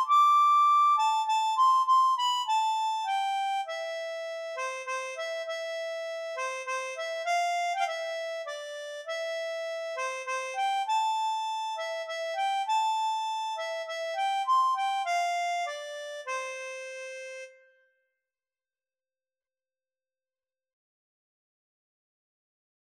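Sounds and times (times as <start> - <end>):
harmonica playing a waltz: 0.0 - 17.7.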